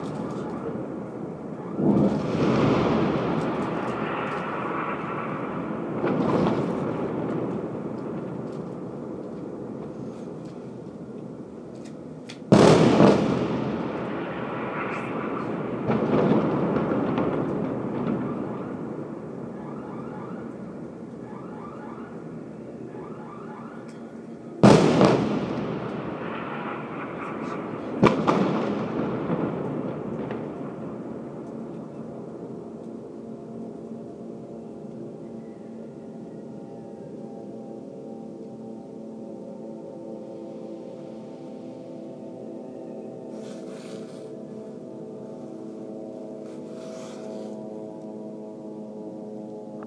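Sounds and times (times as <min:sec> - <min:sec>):
explosions in Gaza: 0:00.0 - 0:10.4, 0:12.5 - 0:22.2, 0:24.6 - 0:32.4.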